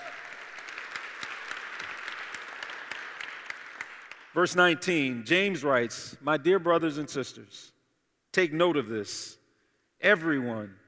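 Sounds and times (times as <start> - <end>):
audience applause: 0.0 - 4.3
speech: 4.4 - 7.8, 8.4 - 9.4, 10.0 - 10.8.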